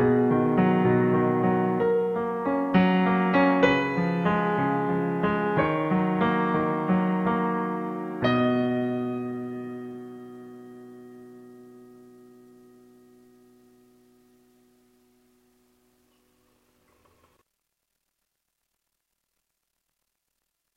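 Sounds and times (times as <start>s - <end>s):
piano song: 0.0s - 15.6s.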